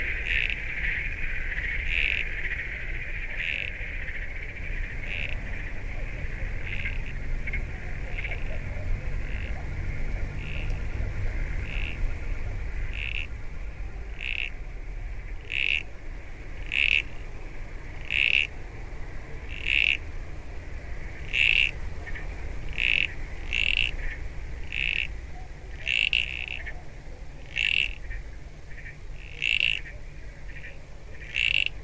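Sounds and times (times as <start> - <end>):
wetland soundscape in Chile: 0.0 - 31.8.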